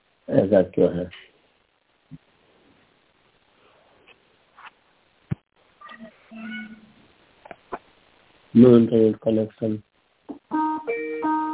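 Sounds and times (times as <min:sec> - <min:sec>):
speech: 0:00.3 - 0:01.2, 0:08.5 - 0:09.9
phone's outgoing ringback tone, melodic electronic chime: 0:10.5 - 0:11.5.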